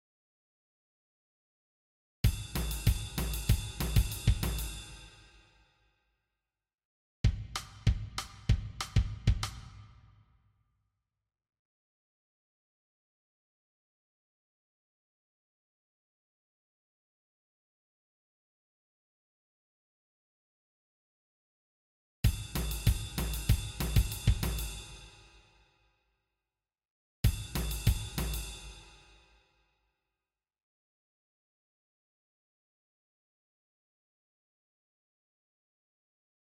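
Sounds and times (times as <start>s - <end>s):
drum kit: 2.3s - 5.1s, 7.3s - 9.8s, 22.3s - 25.1s, 27.2s - 29.0s.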